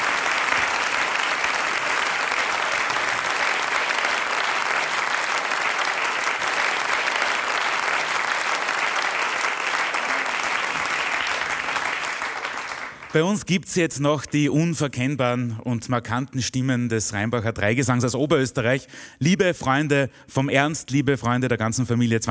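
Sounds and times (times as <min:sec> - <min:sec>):
big applause: 0:00.0 - 0:13.5
speech: 0:13.2 - 0:22.2.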